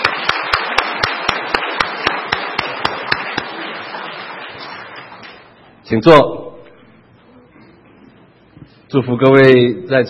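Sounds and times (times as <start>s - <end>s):
audience applause: 0.0s - 5.6s
speech: 5.9s - 6.4s, 8.9s - 10.0s.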